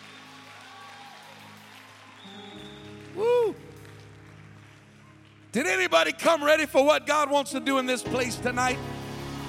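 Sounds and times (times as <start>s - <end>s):
audience clapping hands in praise: 0.0s - 6.7s
speech: 3.2s - 3.6s, 5.5s - 9.0s.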